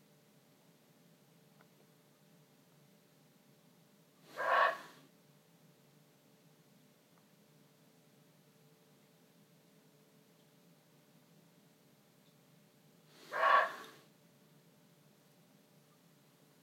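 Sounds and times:
muntjac deer calling: 4.3 - 5.1, 13.2 - 14.1.

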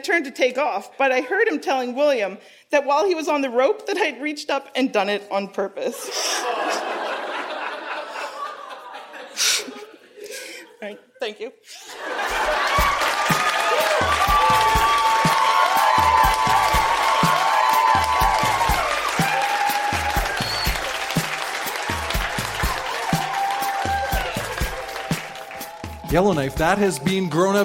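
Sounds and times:
speech: 0.0 - 7.1, 10.8 - 12.9, 26.1 - 27.6
laughter: 5.9 - 11.1, 11.7 - 15.2
audience applause: 11.9 - 27.5.

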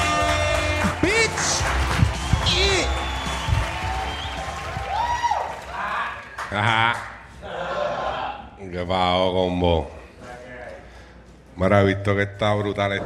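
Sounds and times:
audience applause: 0.0 - 6.7
speech: 6.5 - 7.1, 8.8 - 10.0, 11.6 - 13.0.

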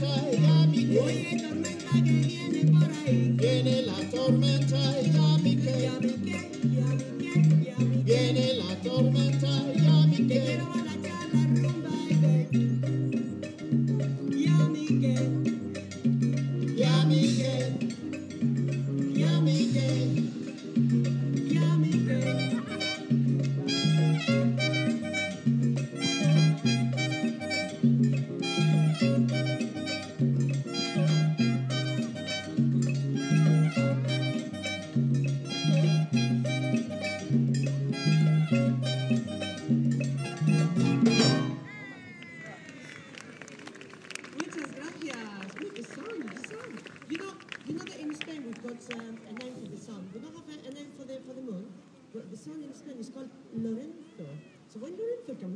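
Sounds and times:
bandstand music in Roberts Park Saltaire: 0.0 - 41.8.

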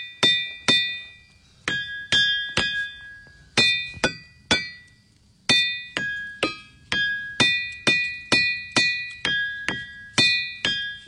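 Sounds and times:
ringing boulders struck at Ringing Rocks Park, Pennsylvania: 0.0 - 11.0.

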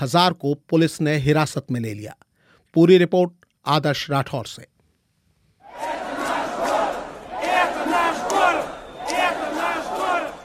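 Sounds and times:
speech: 0.0 - 4.7
protesters chanting slogans outside Moscow city hall: 5.6 - 10.4.

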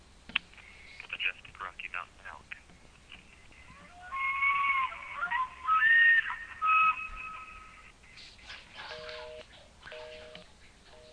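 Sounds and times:
elk bugling: 3.6 - 7.9.

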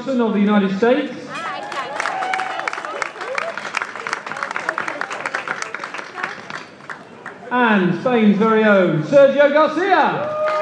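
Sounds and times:
speech: 0.0 - 1.2, 7.5 - 10.4
audience applause: 1.4 - 7.4, 10.2 - 10.6.

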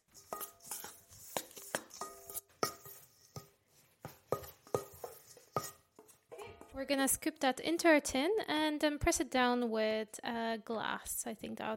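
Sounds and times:
mixing crushed biscuits with melted butter: 0.0 - 6.7
speech: 6.8 - 11.7.

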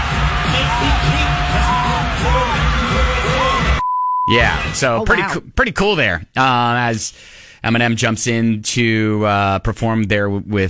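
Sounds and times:
crowd cheering wildly: 0.0 - 3.8
speech: 4.3 - 10.6.

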